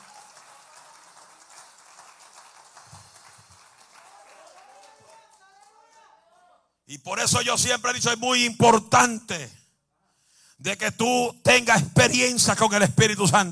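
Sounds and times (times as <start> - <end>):
audience applause: 0.0 - 5.9
speech: 6.9 - 9.6, 10.6 - 13.4.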